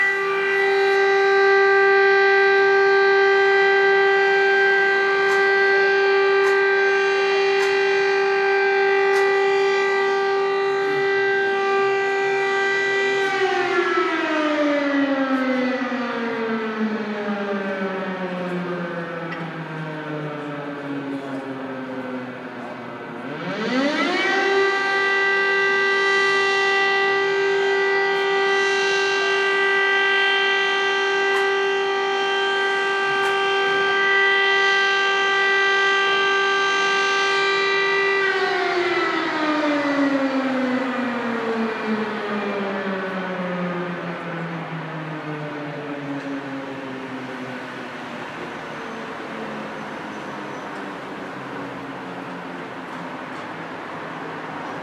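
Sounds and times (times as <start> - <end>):
warning alarm: 0.0 - 54.8.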